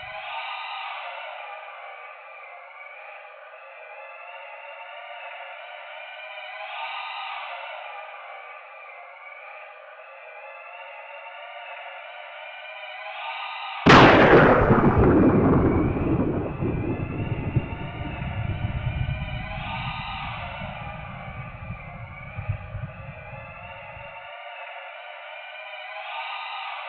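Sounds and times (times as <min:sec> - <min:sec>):
planet thunder in the background: 0:13.9 - 0:24.1.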